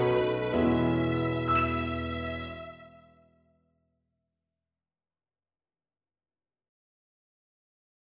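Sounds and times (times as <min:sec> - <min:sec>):
backing track: 0:00.0 - 0:02.9.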